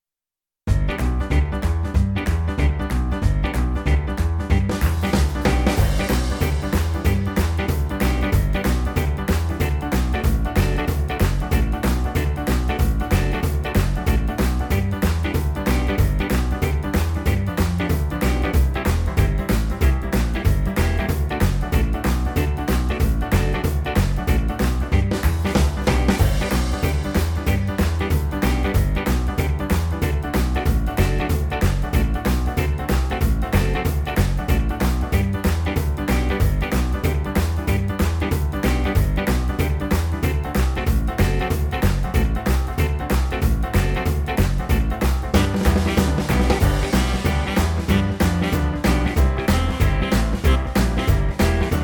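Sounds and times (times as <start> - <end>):
fully instrumented backing track in G major: 0.7 - 51.8.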